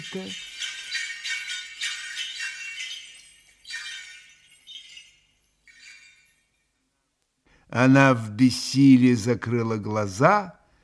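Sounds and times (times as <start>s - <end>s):
speech: 0.0s - 0.5s, 7.7s - 10.6s
small bell jingling in the distance: 0.0s - 6.9s.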